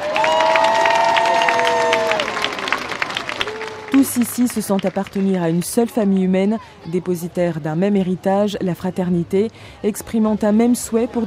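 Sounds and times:
large crowd cheering in a square: 0.0 - 5.6
scattered clapping: 0.0 - 5.6
speech: 3.9 - 11.2.

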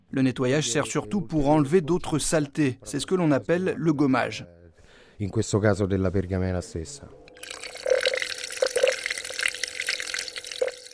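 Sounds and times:
speech: 0.1 - 4.6, 5.2 - 7.2
hollow gurgling bubbles: 7.4 - 10.9
treated water running in large sinks of a parchment restoration laboratory: 7.4 - 10.9.

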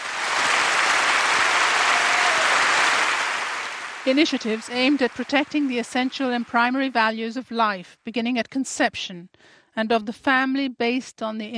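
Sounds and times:
audience applause: 0.0 - 7.0
speech: 4.0 - 11.5.

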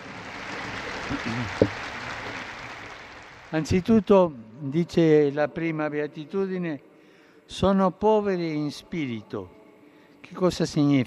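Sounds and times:
audience applause: 0.0 - 4.1
speech: 1.1 - 1.8, 3.5 - 6.9, 7.5 - 9.6, 10.3 - 11.0.

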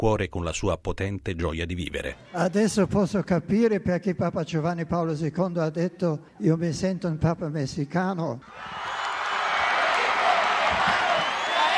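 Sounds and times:
speech: 0.0 - 8.9
large crowd cheering and shouting: 8.4 - 11.7.

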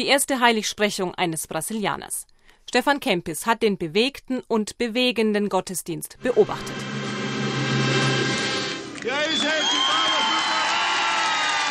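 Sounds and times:
speech: 0.0 - 6.9
crowd applause at papal open-air mass on the Marsfeld: 6.6 - 11.7.

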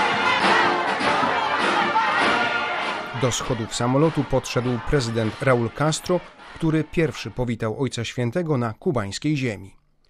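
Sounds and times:
crowd of Cubans singing at airport: 0.0 - 7.5
speech: 3.2 - 9.8.

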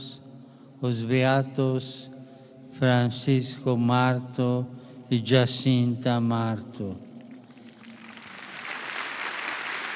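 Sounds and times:
speech: 0.8 - 2.1, 2.8 - 7.1
large crowd applauding at the canonization of the Fátima seers: 7.5 - 9.9.

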